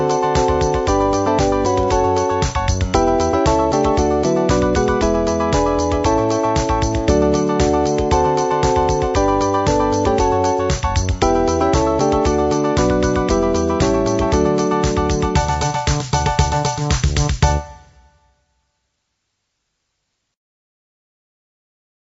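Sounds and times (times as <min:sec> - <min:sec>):
karaoke singing: 0:00.0 - 0:17.6.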